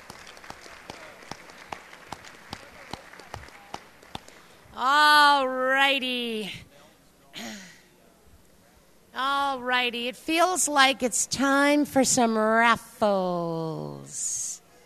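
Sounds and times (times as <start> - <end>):
thin scattered audience applause: 0.0 - 4.5
speech: 4.8 - 6.7, 9.2 - 14.4.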